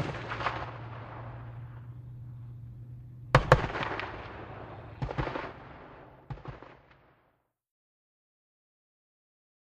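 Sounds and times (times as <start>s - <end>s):
.50 caliber machine gun fired in canyon: 0.0s - 2.0s, 3.3s - 7.3s
bullet ricochets: 0.0s - 2.3s, 3.3s - 7.3s.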